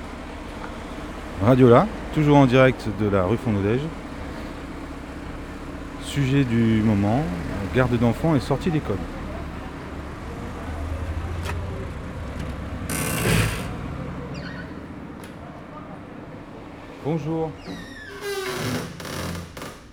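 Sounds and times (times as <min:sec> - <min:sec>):
street sounds: 0:00.0 - 0:19.9
speech: 0:01.4 - 0:04.0, 0:06.1 - 0:09.2, 0:17.1 - 0:17.9
rattling noise: 0:10.9 - 0:19.9
noisy creaking shop door: 0:11.4 - 0:19.9.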